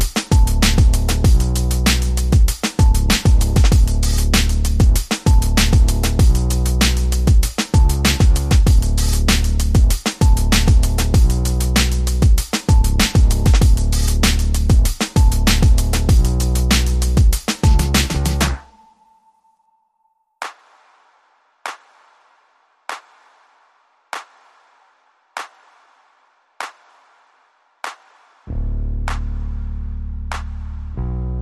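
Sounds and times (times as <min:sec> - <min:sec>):
bass: 0:00.0 - 0:18.6, 0:28.5 - 0:31.4
drums: 0:00.0 - 0:18.7, 0:20.4 - 0:28.5, 0:29.1 - 0:29.6, 0:30.3 - 0:31.0.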